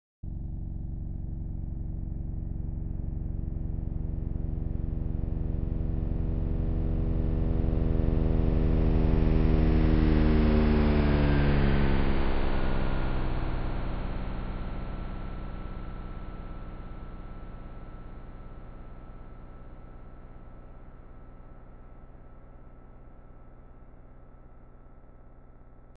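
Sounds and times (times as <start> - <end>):
auralized flyover: 0.3 - 17.6.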